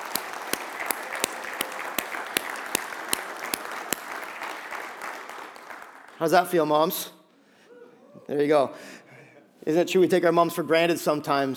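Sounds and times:
audience applause: 0.0 - 6.3
speech: 6.2 - 7.2, 8.3 - 9.0, 9.6 - 11.5.

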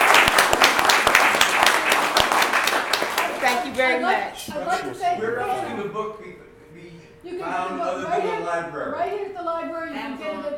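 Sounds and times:
audience applause for panelists: 0.0 - 3.8
speech: 3.8 - 10.5.

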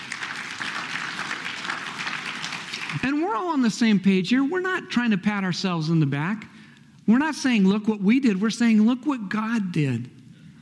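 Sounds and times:
audience applause: 0.0 - 3.1
speech: 2.9 - 6.5, 7.1 - 10.2.

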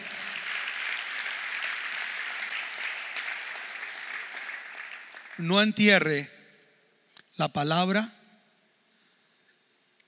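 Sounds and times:
audience applause: 0.0 - 5.8
speech: 5.4 - 6.4, 7.4 - 8.2.

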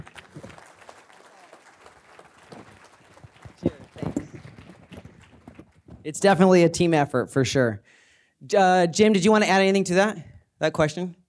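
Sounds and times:
round of applause: 0.0 - 5.9
speech: 6.0 - 11.2.

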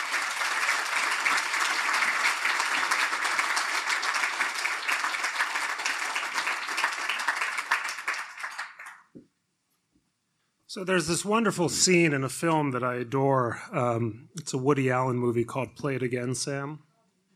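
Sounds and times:
audience applause at the Lowy Institute media lecture: 0.0 - 9.1
speech: 10.8 - 16.9.

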